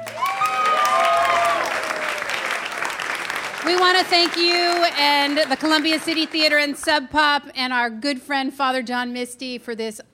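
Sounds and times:
high whooping cheer: 0:00.0 - 0:03.0
audience applause at the Columbia City Theater: 0:00.0 - 0:07.0
speech: 0:03.7 - 0:10.1.

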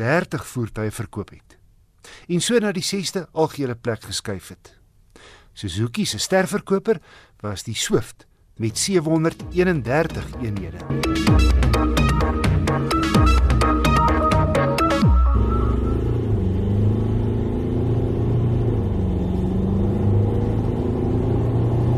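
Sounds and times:
speech: 0:00.0 - 0:11.8
Ford Everest twin-turbo 2-litre diesel SUV engine revving: 0:10.8 - 0:21.9.

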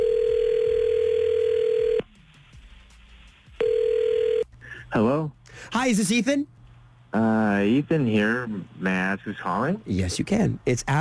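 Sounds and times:
telephone ringback tone: 0:00.0 - 0:02.0, 0:03.6 - 0:04.4
speech: 0:04.9 - 0:10.9.

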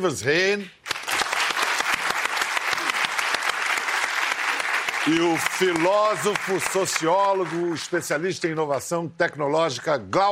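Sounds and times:
speech: 0:00.0 - 0:00.9, 0:05.0 - 0:10.2
studio audience applauding a guest on a science discussion show: 0:00.8 - 0:08.2.

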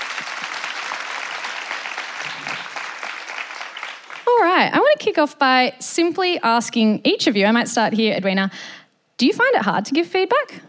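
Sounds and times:
audience clapping: 0:00.0 - 0:04.4
speech: 0:04.6 - 0:10.6.

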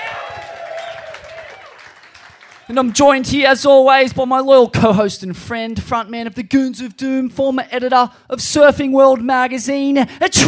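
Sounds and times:
audience applause: 0:00.0 - 0:03.0
speech: 0:02.7 - 0:10.4.

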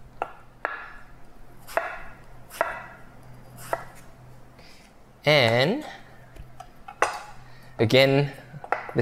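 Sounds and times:
knife slicing through apples into thick pieces: 0:01.6 - 0:04.1
speech: 0:05.3 - 0:06.0, 0:07.8 - 0:08.4.

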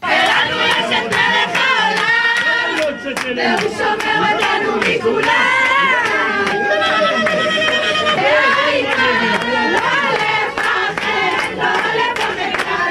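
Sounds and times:
crowd celebrating outside a house: 0:00.0 - 0:12.9
laughter: 0:00.3 - 0:12.2.

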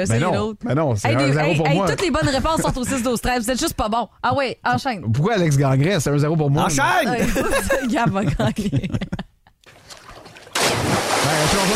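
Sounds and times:
speech: 0:00.0 - 0:09.2
laughter: 0:07.0 - 0:09.4
person diving into a swimming pool: 0:09.7 - 0:11.7
rushing churning water in a swimming pool: 0:09.7 - 0:11.7.

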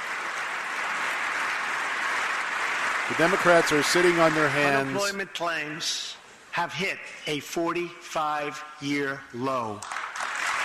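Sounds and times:
Republicans applauding: 0:00.0 - 0:05.2, 0:09.8 - 0:10.6
speech: 0:03.1 - 0:10.0.

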